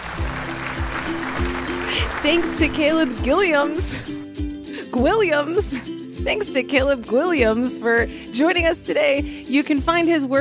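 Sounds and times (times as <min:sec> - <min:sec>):
applause sound effect: 0:00.0 - 0:04.1
speech: 0:02.2 - 0:04.0, 0:05.0 - 0:10.4.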